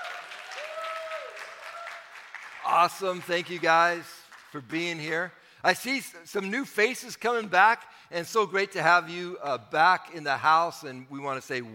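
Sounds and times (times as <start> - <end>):
crowd applause: 0.0 - 4.5
speech: 2.7 - 11.7.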